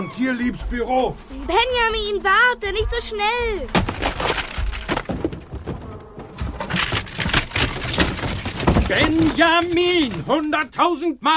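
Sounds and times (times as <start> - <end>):
speech: 0.0 - 4.0, 8.9 - 11.3
heavy thuds: 2.6 - 10.6
rattling debris: 3.6 - 10.8
elephant crashing through a wooden door: 3.7 - 10.6.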